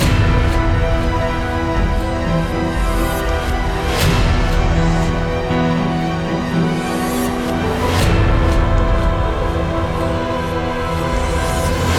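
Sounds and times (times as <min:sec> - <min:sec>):
battle music: 0:00.0 - 0:11.9.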